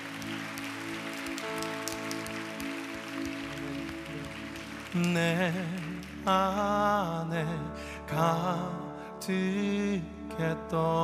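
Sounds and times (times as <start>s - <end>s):
audience applause: 0.0s - 6.7s
speech: 4.9s - 11.0s.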